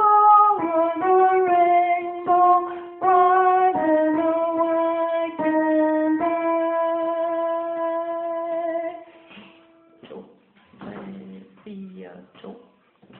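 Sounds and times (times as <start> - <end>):
soprano singing: 0.0 - 9.1.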